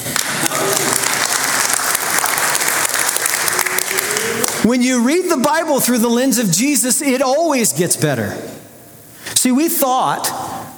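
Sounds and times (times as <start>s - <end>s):
audience clapping: 0.0s - 4.7s
speech: 4.7s - 8.6s, 9.5s - 10.4s.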